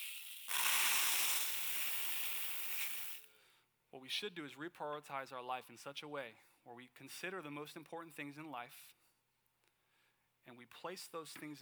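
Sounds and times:
liquid poured back into a bucket: 0:00.0 - 0:03.3
speech: 0:03.9 - 0:09.0, 0:10.4 - 0:11.6.

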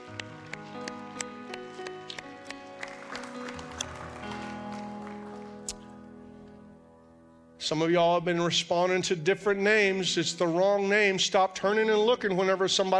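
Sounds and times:
audience clapping hands in praise: 0:00.0 - 0:06.0
speech: 0:07.7 - 0:12.9.

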